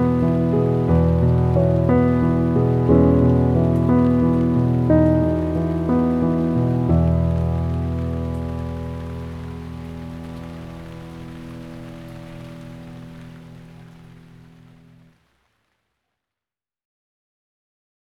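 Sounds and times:
piano thinking music: 0.0s - 14.4s
rain: 0.0s - 16.1s.

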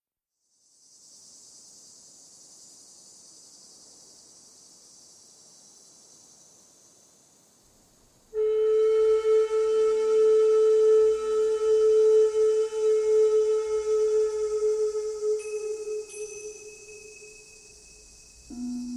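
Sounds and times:
crickets chirping: 0.4s - 18.9s
flute: 8.4s - 18.9s.

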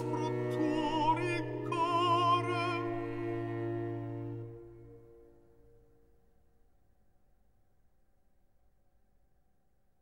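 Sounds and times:
alto solo singing cantata recitative: 0.0s - 5.3s.

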